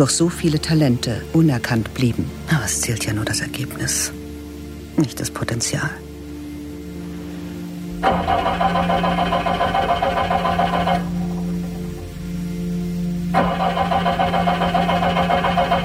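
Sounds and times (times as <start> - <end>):
speech: 0.0 - 4.2, 5.0 - 6.0
car engine wheezing, failing to start: 8.0 - 12.4, 13.3 - 15.8.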